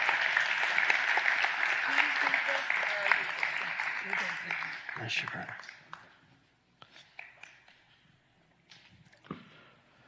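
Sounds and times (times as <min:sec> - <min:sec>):
crowd applause: 0:00.0 - 0:06.0
speech: 0:05.1 - 0:05.8.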